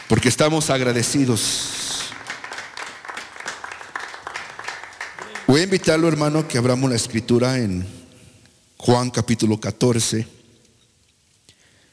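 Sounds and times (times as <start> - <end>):
audience applause: 0.0 - 6.2
speech: 0.1 - 2.0, 5.5 - 8.0, 8.8 - 10.4.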